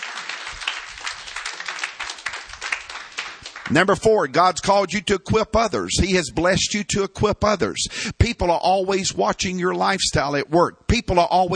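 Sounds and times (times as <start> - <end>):
audience clapping hands: 0.0 - 4.2
speech: 3.7 - 11.5.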